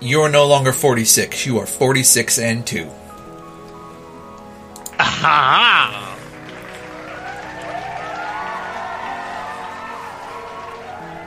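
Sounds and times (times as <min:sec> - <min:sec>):
speech: 0:00.0 - 0:03.1, 0:05.2 - 0:06.0
laughter: 0:05.0 - 0:06.3
applause: 0:05.4 - 0:11.2.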